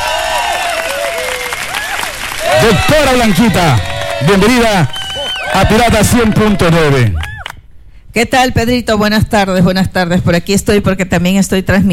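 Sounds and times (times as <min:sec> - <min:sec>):
audience applause: 0:00.0 - 0:07.5
speech: 0:02.6 - 0:07.2, 0:08.2 - 0:11.9.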